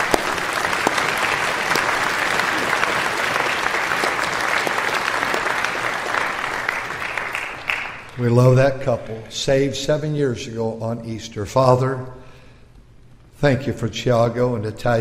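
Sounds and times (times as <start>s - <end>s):
audience clapping: 0.0s - 8.4s
speech: 8.2s - 12.2s, 13.4s - 14.9s.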